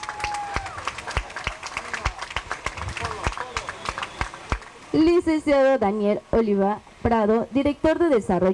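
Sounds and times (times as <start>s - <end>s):
whoop or whistle: 0.0s - 0.8s
audience clapping: 0.0s - 4.9s
speech: 4.9s - 8.5s.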